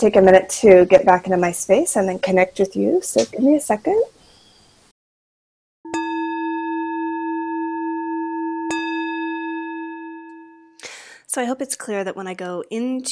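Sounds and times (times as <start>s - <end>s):
speech: 0.0s - 4.2s, 11.4s - 13.1s
singing bowl or gong struck and ringing: 5.9s - 10.8s.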